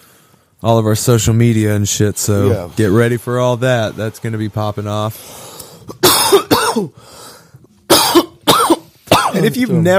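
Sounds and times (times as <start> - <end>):
speech: 0.6 - 6.1, 9.4 - 9.9
people coughing while smoking a joint: 5.9 - 7.0, 7.9 - 9.5.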